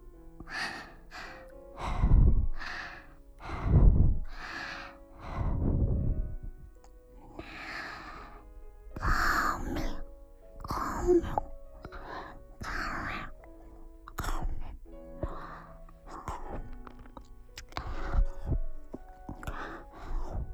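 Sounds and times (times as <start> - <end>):
breath blown softly into the ear: 0.0 - 20.5.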